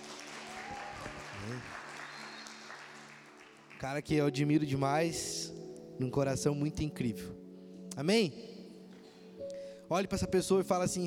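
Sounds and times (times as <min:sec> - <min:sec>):
audience applause: 0:00.0 - 0:03.9
speech: 0:01.4 - 0:01.8, 0:03.8 - 0:07.4, 0:08.0 - 0:08.5, 0:09.9 - 0:11.0.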